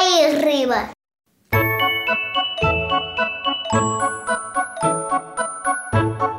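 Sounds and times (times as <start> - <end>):
speech: 0.2 - 1.0
small bell jingling: 1.6 - 6.2.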